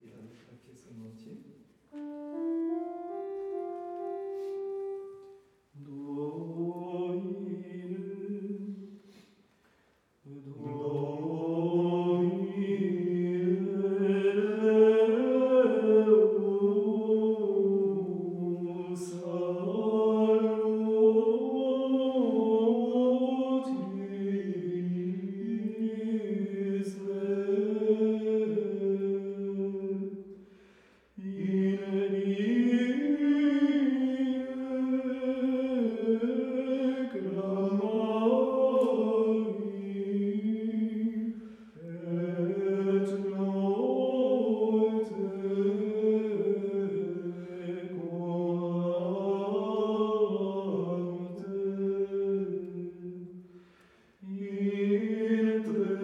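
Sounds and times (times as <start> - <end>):
Gregorian chant: 1.9 - 9.4, 10.2 - 30.5, 31.2 - 56.0.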